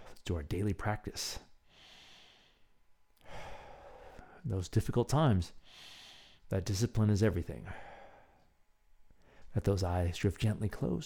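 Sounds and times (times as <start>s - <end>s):
speech: 0.3s - 1.5s, 4.4s - 7.9s, 9.5s - 11.0s
breathing in through the nose and out through the mouth: 1.6s - 4.4s, 5.6s - 6.5s, 7.6s - 8.5s, 9.2s - 9.6s.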